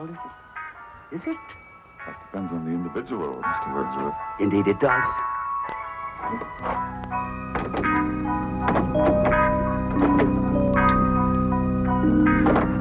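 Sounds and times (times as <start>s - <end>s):
speech: 0.0s - 0.4s, 1.1s - 5.3s, 6.2s - 10.5s
door lock clunks and clicks: 6.2s - 12.7s
steady humming tonal drone: 6.6s - 12.7s.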